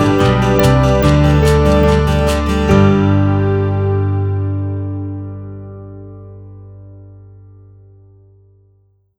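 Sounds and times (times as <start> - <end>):
uplifting happy upbeat acoustic music: 0.0 - 5.8.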